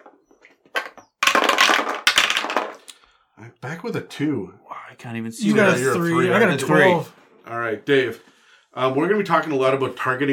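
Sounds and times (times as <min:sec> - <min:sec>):
dice being rolled: 0:00.7 - 0:02.9
speech: 0:03.4 - 0:10.3.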